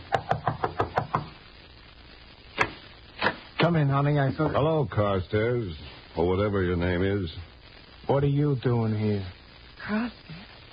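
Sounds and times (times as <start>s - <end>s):
knocking on a door: 0.1s - 1.3s
speech: 3.7s - 7.5s, 8.1s - 10.4s.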